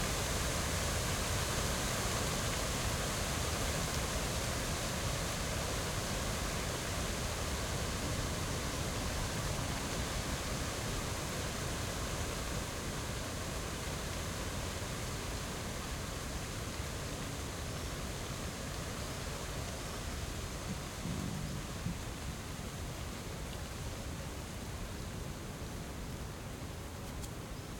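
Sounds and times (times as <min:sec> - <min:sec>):
lake in Crimea in summer daytime: 0:00.0 - 0:27.7
high wind in tree tops in Crimea in summer daytime: 0:19.1 - 0:27.7.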